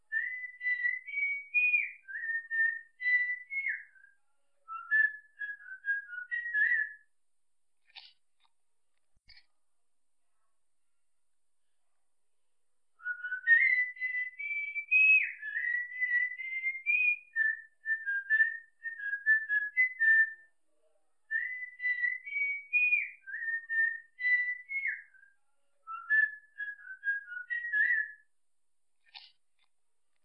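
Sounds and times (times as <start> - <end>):
whistling for a cockatiel: 0.1 - 7.1, 13.0 - 20.6, 21.3 - 28.3.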